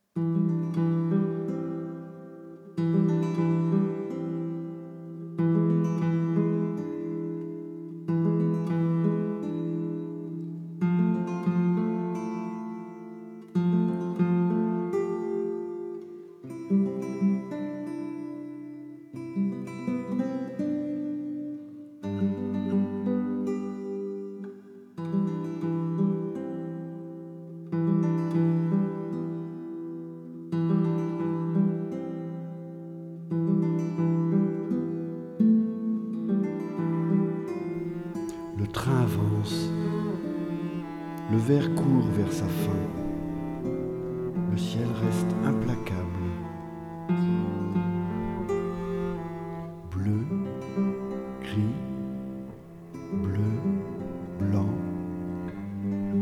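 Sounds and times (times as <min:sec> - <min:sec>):
guitar: 0:00.0 - 0:56.2.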